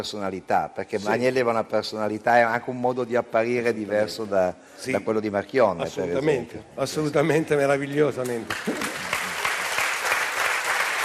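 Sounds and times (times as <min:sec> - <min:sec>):
speech: 0:00.0 - 0:09.1
audience applause: 0:08.5 - 0:11.0.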